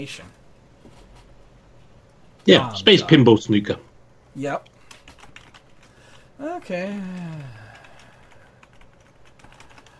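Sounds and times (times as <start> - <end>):
speech: 0.0 - 0.4, 2.4 - 4.7, 6.4 - 7.6
typing on a computer keyboard: 4.6 - 6.2, 7.0 - 9.9.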